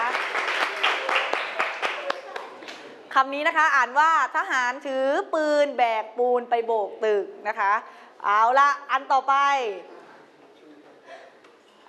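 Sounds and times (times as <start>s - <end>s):
children clapping for a classmate: 0.0s - 2.9s
speech: 3.2s - 9.9s.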